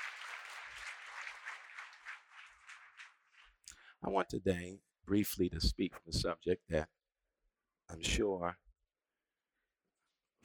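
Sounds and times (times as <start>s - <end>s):
audience applause: 0.0s - 3.7s
speech: 4.0s - 7.0s, 7.9s - 8.6s.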